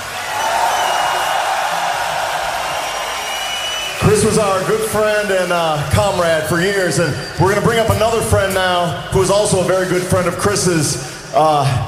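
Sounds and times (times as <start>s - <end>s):
audience roaring applause: 0.0s - 7.0s
speech: 4.2s - 11.8s.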